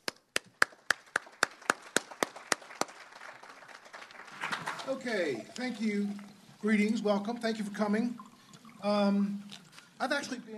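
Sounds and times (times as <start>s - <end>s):
audience applause for a panel: 0.4s - 5.4s
speech: 4.9s - 8.2s, 8.8s - 10.5s.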